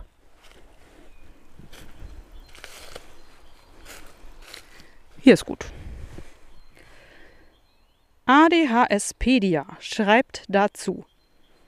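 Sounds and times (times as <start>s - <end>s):
footsteps of a person walking through a forest: 0.0s - 7.3s
speech: 5.3s - 5.8s, 8.5s - 11.1s.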